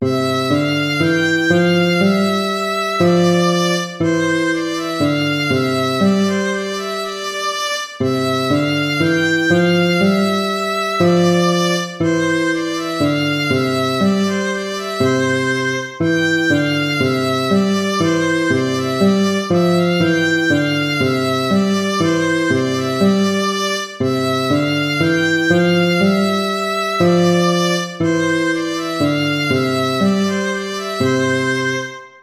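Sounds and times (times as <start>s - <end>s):
gavotte music: 0.0s - 32.2s.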